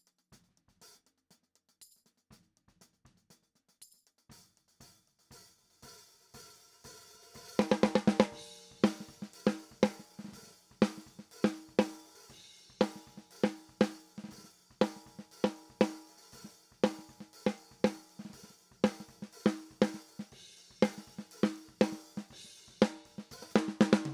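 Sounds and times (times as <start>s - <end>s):
snare drum top: 4.3s - 24.1s.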